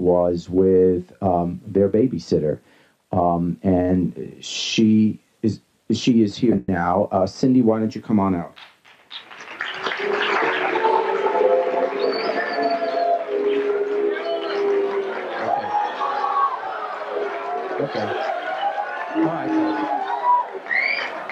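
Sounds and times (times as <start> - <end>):
speech: 0.1 - 8.7, 17.8 - 18.2
studio audience oohing and booing: 9.1 - 21.2.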